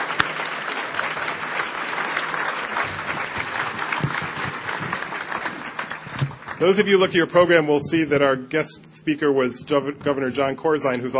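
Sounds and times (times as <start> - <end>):
audience applause: 0.0 - 7.6
speech: 6.6 - 11.1.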